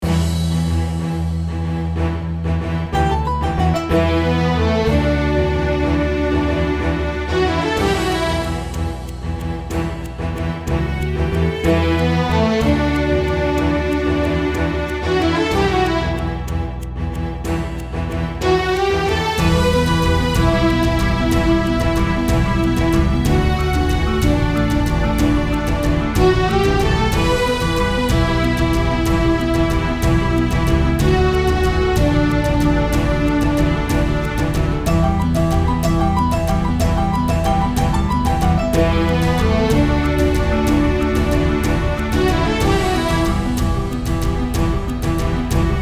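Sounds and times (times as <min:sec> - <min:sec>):
Greek orchestral music: 0:00.0 - 0:45.8.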